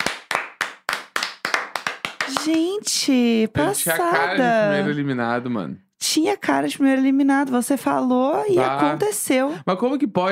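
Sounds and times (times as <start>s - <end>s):
applause, clapping: 0.0s - 2.8s
speech: 2.3s - 10.3s.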